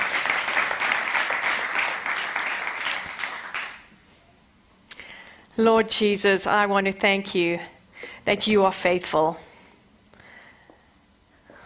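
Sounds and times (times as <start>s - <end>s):
audience clapping: 0.0s - 3.9s
speech: 5.6s - 9.5s.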